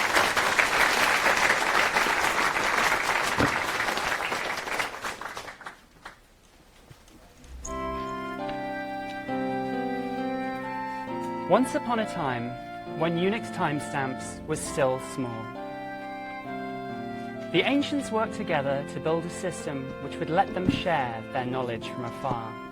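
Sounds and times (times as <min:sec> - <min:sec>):
crowd applauding: 0:00.0 - 0:06.2
sustained layered musical tones: 0:07.5 - 0:22.7
speech: 0:11.5 - 0:15.6, 0:17.5 - 0:22.6.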